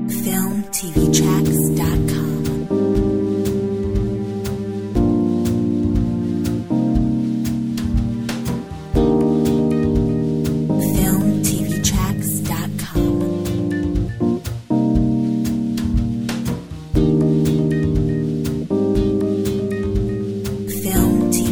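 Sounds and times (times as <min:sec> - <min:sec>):
mellow jazz: 0:00.2 - 0:21.5.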